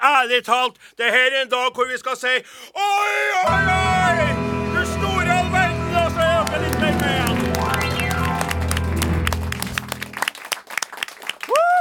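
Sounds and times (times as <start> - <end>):
speech: 0.2 - 4.5
musical chord: 3.5 - 10.3
studio audience applause: 4.8 - 11.7
scattered cheering: 5.3 - 9.9
whoop or whistle: 11.5 - 11.7.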